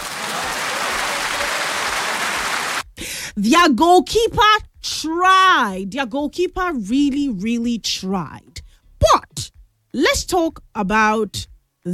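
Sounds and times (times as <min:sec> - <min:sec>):
applause: 0:00.0 - 0:02.8
speech: 0:03.0 - 0:11.9.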